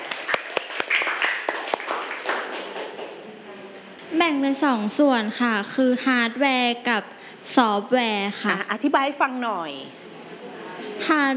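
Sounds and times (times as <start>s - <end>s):
class applauding: 0.0s - 3.2s
speech: 4.1s - 10.0s, 11.0s - 11.3s.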